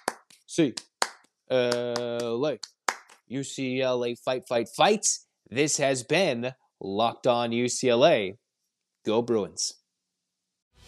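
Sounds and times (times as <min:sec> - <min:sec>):
rhythmic hand claps: 0:00.0 - 0:03.2
speech: 0:00.5 - 0:00.9, 0:01.5 - 0:08.4, 0:09.0 - 0:09.8.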